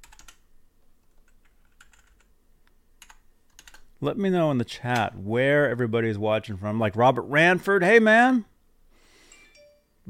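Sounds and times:
computer keyboard typing: 0.0s - 0.4s, 1.0s - 2.3s, 3.0s - 3.9s
speech: 4.0s - 8.5s.

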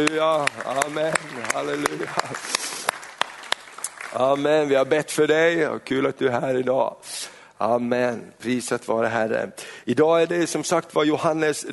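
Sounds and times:
speech: 0.0s - 2.6s, 4.1s - 11.7s
audience applauding: 0.0s - 5.1s.

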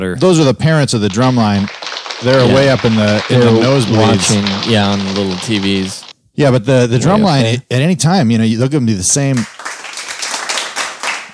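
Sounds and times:
speech: 0.0s - 9.6s
crowd clapping in rhythmic unison: 0.2s - 7.6s, 9.3s - 11.3s
laughter: 0.9s - 6.0s, 6.6s - 7.7s.

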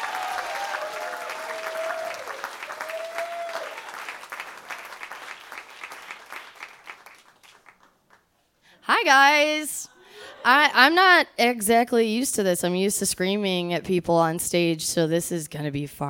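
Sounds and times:
audience applause: 0.0s - 8.2s
speech: 9.0s - 16.0s.

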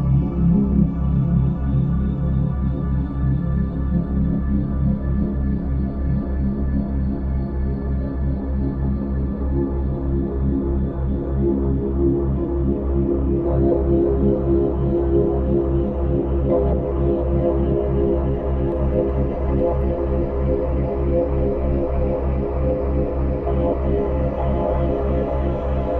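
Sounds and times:
full-spectrum binaural drone on low C# 65.4 Hz: 0.0s - 25.9s.

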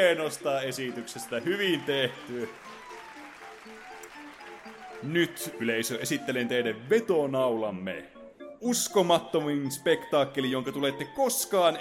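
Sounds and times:
speech: 0.0s - 2.9s, 5.0s - 11.7s
small round of applause: 0.0s - 6.3s.

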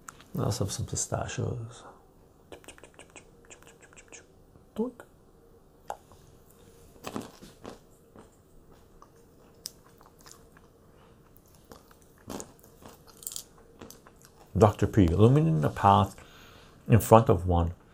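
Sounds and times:
soft steady hiss: 0.0s - 17.9s
speech: 0.4s - 2.0s, 4.8s - 5.1s, 14.6s - 16.2s, 16.9s - 17.8s
crunchy pistachios being bitten and chewed: 7.0s - 15.2s.

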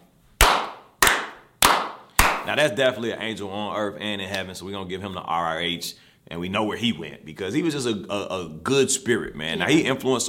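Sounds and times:
slow hand claps: 0.4s - 2.5s
speech: 2.4s - 10.2s.

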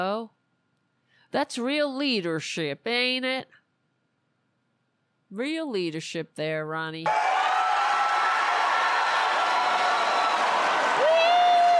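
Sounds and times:
speech: 0.0s - 0.4s, 1.3s - 3.6s, 5.3s - 7.2s
crowd cheering: 7.1s - 11.7s.

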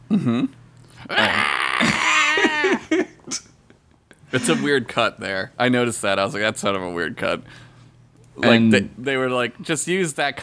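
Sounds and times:
speech: 0.1s - 1.4s, 4.3s - 7.6s, 8.4s - 10.4s
man screaming in anguish: 1.1s - 3.0s
laughter: 1.1s - 3.5s, 4.2s - 4.9s.

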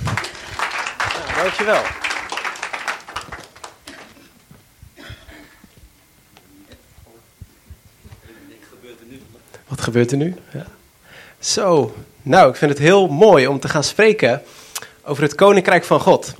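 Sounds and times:
audience applause: 0.0s - 4.4s
speech: 1.4s - 2.0s, 9.8s - 10.8s, 11.4s - 16.3s.

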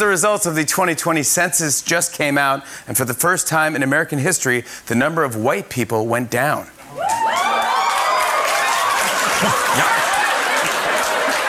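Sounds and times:
speech: 0.0s - 7.4s, 9.4s - 10.1s
talk show audience applause: 7.0s - 11.4s
audience laughter: 8.8s - 11.4s.

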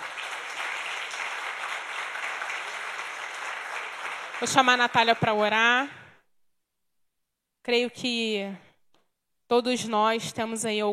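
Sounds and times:
audience applause: 0.0s - 5.4s
speech: 4.4s - 6.0s, 7.6s - 8.6s, 9.5s - 10.9s.

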